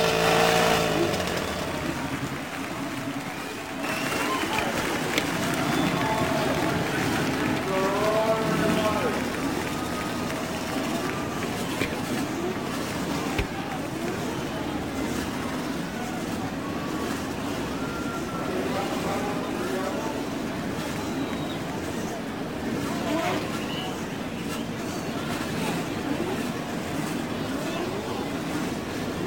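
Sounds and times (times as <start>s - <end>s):
race car engines starting and roaring: 0.0s - 29.2s.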